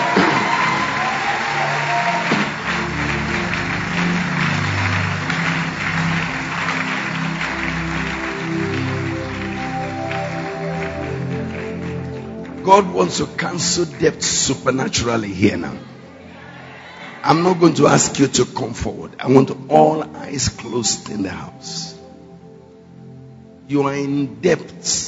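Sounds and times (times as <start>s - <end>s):
audience clapping: 0.0s - 14.2s
speech: 12.7s - 15.9s, 17.3s - 21.9s, 23.7s - 25.0s.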